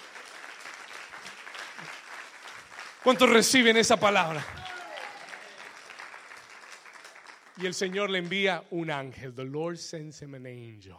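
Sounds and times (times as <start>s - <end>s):
audience applause: 0.0s - 8.5s
speech: 3.0s - 4.6s, 7.6s - 10.9s.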